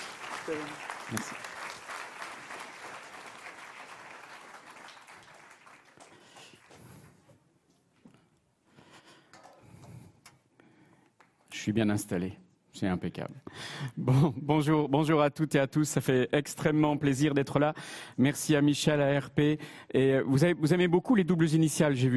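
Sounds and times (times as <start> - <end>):
audience applause welcoming speaker: 0.0 - 7.2
speech: 0.5 - 1.5, 11.7 - 22.1.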